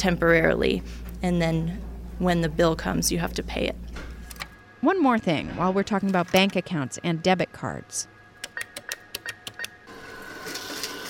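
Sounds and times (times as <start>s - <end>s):
speech: 0.0s - 4.1s, 4.8s - 8.1s
ATM dispensing cash with mechanical clicks and whirs: 8.4s - 11.0s.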